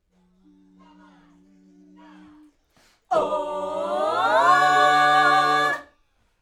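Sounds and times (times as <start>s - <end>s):
backing vocals on AKG microphone: 3.1s - 5.9s.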